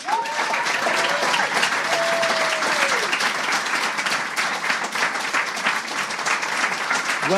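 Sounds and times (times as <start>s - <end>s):
people whooping: 0.0s - 3.3s
panel audience applause for the Conan writers: 0.0s - 7.3s.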